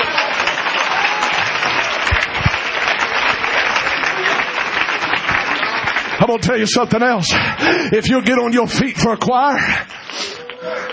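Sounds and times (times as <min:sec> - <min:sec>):
audience clapping hands: 0:00.0 - 0:10.9
speech: 0:06.2 - 0:10.3.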